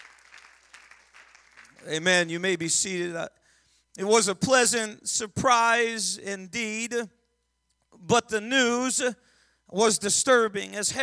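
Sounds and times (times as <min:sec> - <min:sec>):
audience clapping: 0:00.0 - 0:02.3
speech: 0:01.8 - 0:03.4, 0:04.0 - 0:07.2, 0:08.0 - 0:11.0.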